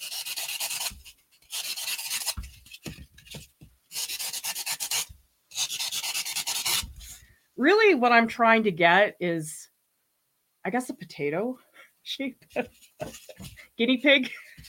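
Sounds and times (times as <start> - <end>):
styrofoam being carved: 0.0 - 7.2
speech: 7.6 - 9.6, 10.6 - 13.2, 13.8 - 14.4.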